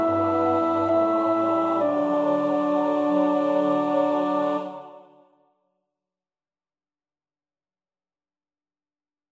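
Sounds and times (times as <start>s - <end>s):
soprano singing: 0.0s - 5.2s.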